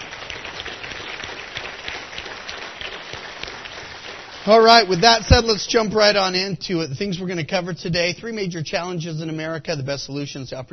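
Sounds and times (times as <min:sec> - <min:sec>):
audience applause: 0:00.0 - 0:05.4
speech: 0:04.4 - 0:10.7.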